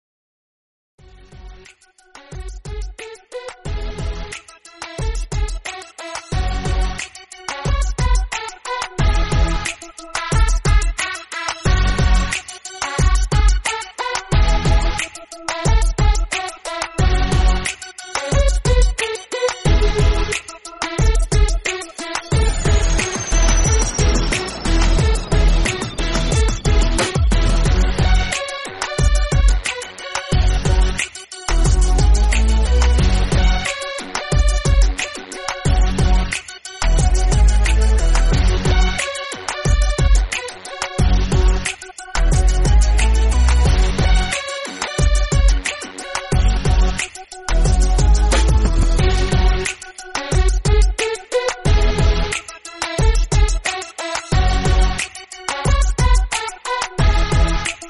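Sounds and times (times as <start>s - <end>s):
trance music: 1.0s - 57.8s.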